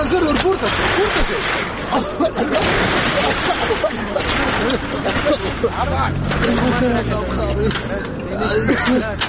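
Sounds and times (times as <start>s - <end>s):
crowd of people talking and calling out: 0.0s - 9.2s
laughter: 0.0s - 9.2s
motor vehicle pulling up: 0.0s - 9.2s
speech: 0.2s - 9.2s.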